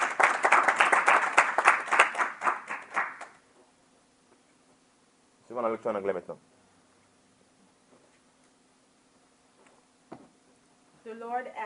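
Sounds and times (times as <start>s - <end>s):
congregation applauding during a church service after a scripture reading: 0.0s - 3.4s
speech: 5.6s - 6.5s.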